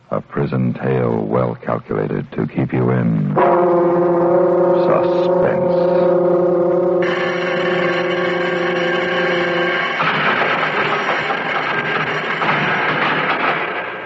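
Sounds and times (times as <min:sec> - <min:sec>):
speech: 0:00.5 - 0:06.2
loud prison bell ringing: 0:03.4 - 0:13.9.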